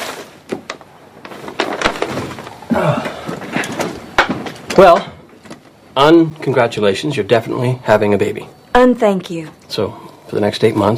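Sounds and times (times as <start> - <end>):
piles of paper pushed off a chair: 0.0 - 0.6, 1.2 - 2.6
speech: 4.8 - 5.1, 6.0 - 10.9.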